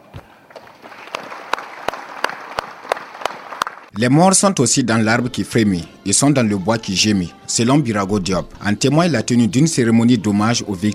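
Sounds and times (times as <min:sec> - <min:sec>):
audience applause: 0:00.5 - 0:03.9
speech: 0:04.0 - 0:10.9.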